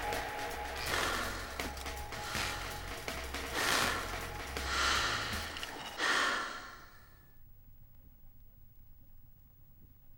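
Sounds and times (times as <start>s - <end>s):
dub music: 0.0s - 5.6s.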